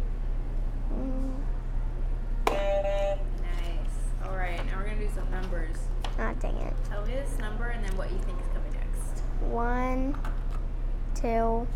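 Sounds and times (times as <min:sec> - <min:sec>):
low hum: 0:00.0 - 0:11.6
game show buzzer: 0:02.5 - 0:03.3
speech: 0:11.2 - 0:11.7.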